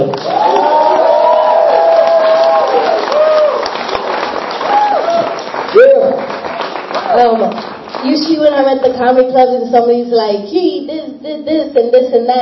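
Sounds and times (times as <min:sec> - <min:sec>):
theater audience clapping for a performer coming onstage: 0:00.0 - 0:08.6
theater audience cheering and shouting: 0:00.1 - 0:06.2
sharp whoop: 0:00.3 - 0:03.7, 0:04.6 - 0:06.2
speech: 0:08.9 - 0:12.4.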